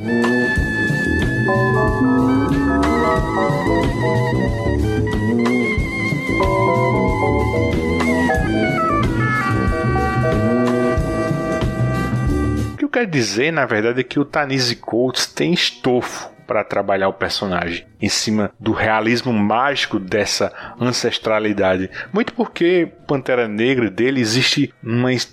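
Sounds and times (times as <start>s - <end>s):
Afrofuturist jazz music: 0.0s - 12.8s
sustained horn-like tones: 0.0s - 12.8s
speech: 13.0s - 25.3s.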